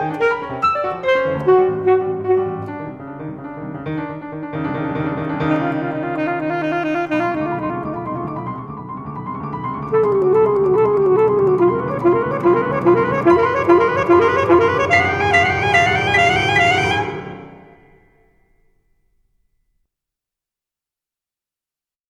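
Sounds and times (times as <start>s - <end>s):
alto saxophone: 0.0s - 8.9s, 9.9s - 18.0s
piano: 0.0s - 19.2s.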